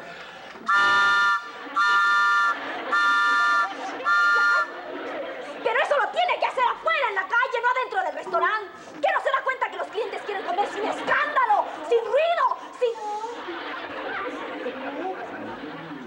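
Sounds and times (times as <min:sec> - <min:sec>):
laughter: 0:00.0 - 0:08.0, 0:09.2 - 0:16.0
postman blowing a whistle: 0:00.7 - 0:04.8.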